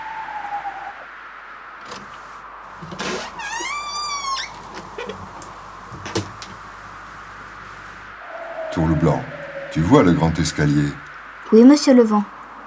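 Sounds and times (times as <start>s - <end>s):
door opening: 2.8s - 5.3s
speech: 8.8s - 12.4s.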